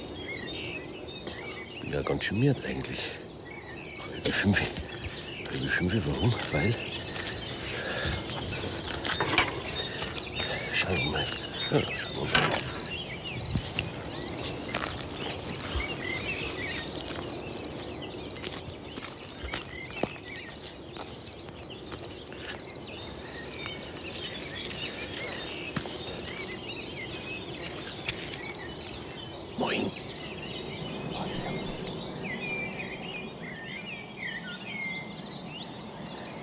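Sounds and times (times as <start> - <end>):
dawn chorus of birds outdoors: 0.0 - 36.4
speech: 1.9 - 3.2, 4.2 - 6.9, 10.9 - 12.7
soft patters and rustles: 4.4 - 29.2.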